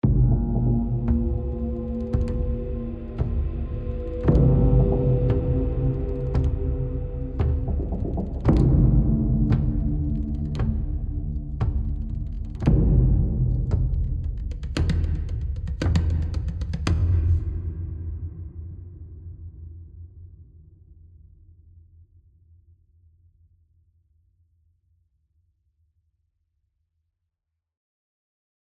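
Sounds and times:
high tension music: 0:00.0 - 0:18.6.

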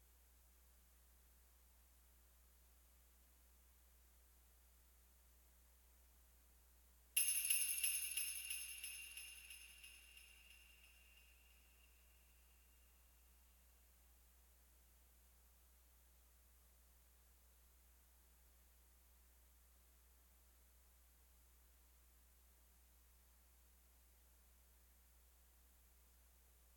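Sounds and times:
Christmas ambience music: 0:07.2 - 0:10.9.

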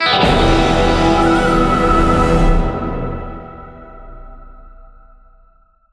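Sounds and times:
Western enemy appear stinger: 0:00.0 - 0:04.6.

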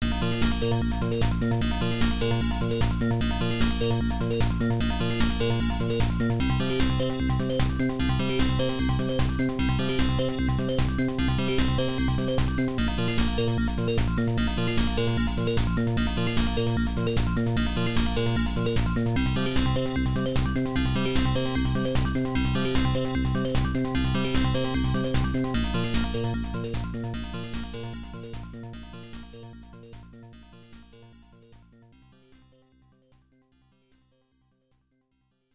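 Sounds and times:
area boss battle music: 0:00.0 - 0:27.8.

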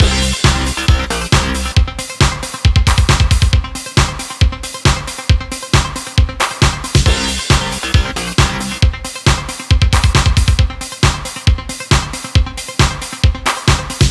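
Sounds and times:
ramen background music: 0:00.0 - 0:14.0.

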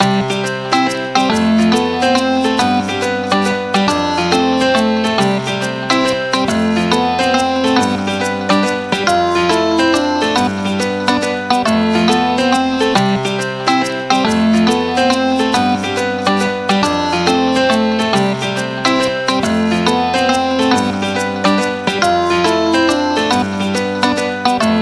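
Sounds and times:
frontend music: 0:00.0 - 0:24.8.

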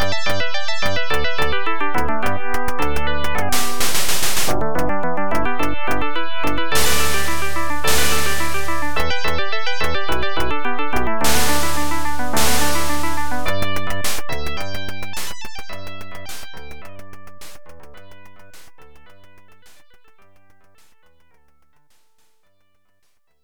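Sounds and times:
round background music: 0:00.0 - 0:18.7.

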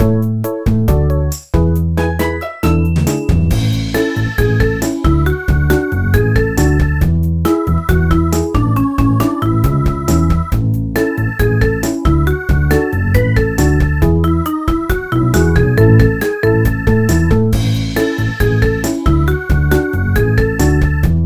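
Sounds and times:
background music: 0:00.0 - 0:21.2.

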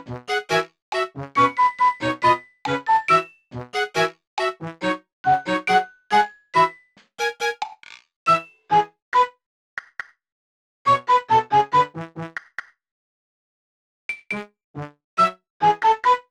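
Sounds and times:
gameplay music: 0:00.0 - 0:07.6, 0:10.9 - 0:12.4, 0:14.3 - 0:16.2.

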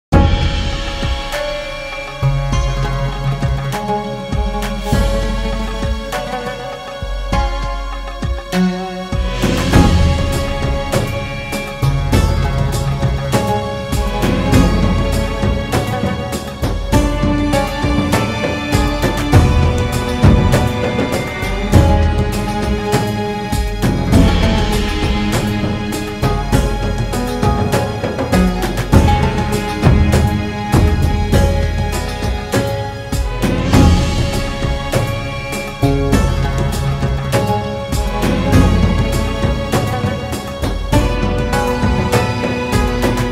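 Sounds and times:
Arabian action suspense music loop: 0:00.1 - 0:43.3.

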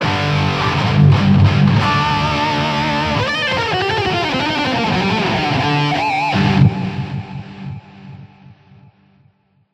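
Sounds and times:
triumphant guitar shredding: 0:00.0 - 0:08.8.

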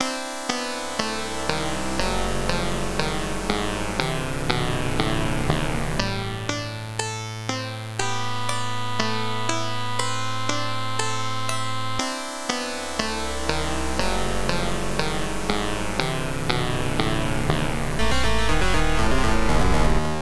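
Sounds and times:
losing theme music: 0:00.0 - 0:20.1.

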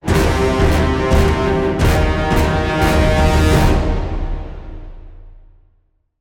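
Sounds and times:
very high threat combat intro music: 0:00.0 - 0:05.6.

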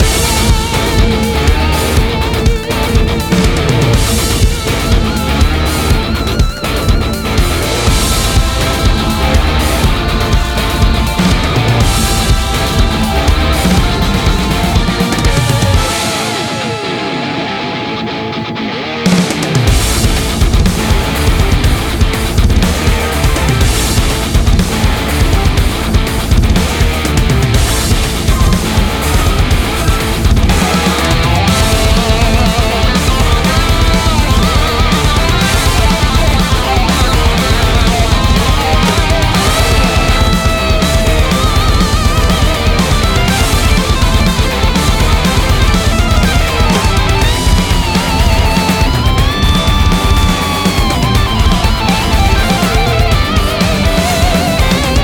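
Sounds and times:
battle music: 0:00.0 - 0:55.0.

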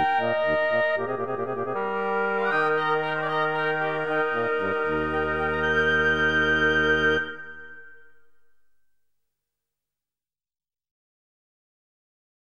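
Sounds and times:
flute melody: 0:00.0 - 0:08.6.

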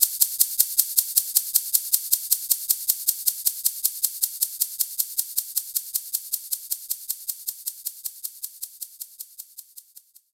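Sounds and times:
cabasa shaking: 0:00.0 - 0:10.3.

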